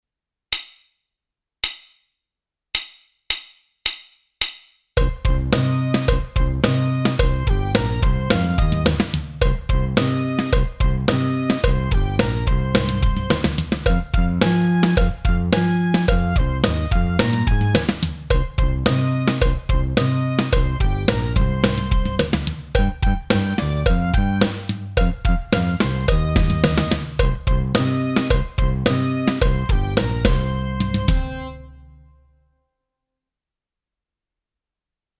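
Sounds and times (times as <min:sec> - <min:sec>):
blues track: 0:05.0 - 0:31.7.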